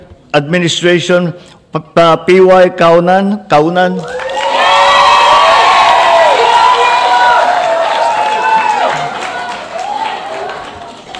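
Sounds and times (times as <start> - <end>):
speech: 0.3 - 4.2
crowd applause: 4.0 - 11.1.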